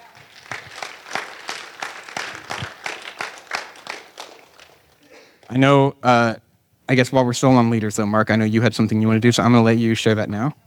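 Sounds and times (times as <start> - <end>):
audience applause: 0.0 - 5.1
speech: 5.5 - 10.6.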